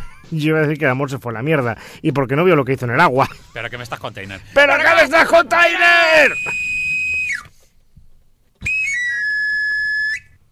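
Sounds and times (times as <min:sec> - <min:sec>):
speech: 0:00.3 - 0:06.7
knife grinder's whistle tune: 0:05.9 - 0:07.5, 0:08.6 - 0:10.4.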